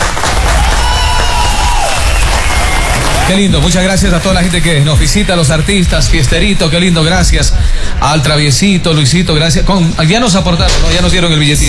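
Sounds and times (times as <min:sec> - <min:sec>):
audience applauding and cheering for performers at a festive event: 0:00.0 - 0:07.4
speech: 0:03.3 - 0:11.6.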